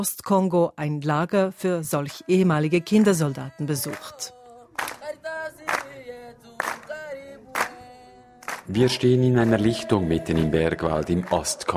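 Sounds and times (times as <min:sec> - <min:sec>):
speech: 0:00.0 - 0:04.9, 0:08.7 - 0:11.7
boys singing: 0:02.0 - 0:11.7
boys clapping rhythmically in a circle: 0:03.8 - 0:09.8, 0:11.0 - 0:11.7.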